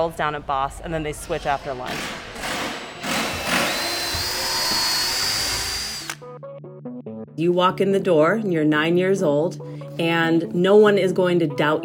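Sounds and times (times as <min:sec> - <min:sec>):
speech: 0:00.0 - 0:02.3, 0:07.4 - 0:11.8
power drill whirring into material: 0:01.9 - 0:06.2.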